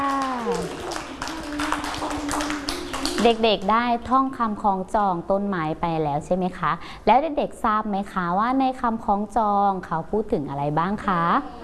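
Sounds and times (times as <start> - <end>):
children clapping: 0.0 - 3.9
speech: 3.2 - 11.6.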